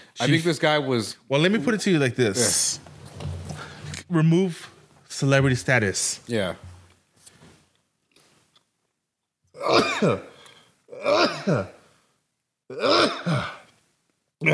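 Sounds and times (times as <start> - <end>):
speech: 0.2 - 2.9, 4.1 - 6.7, 9.6 - 10.3, 11.0 - 11.8, 12.7 - 13.6
loud sneezes: 9.6 - 10.4, 11.0 - 11.8.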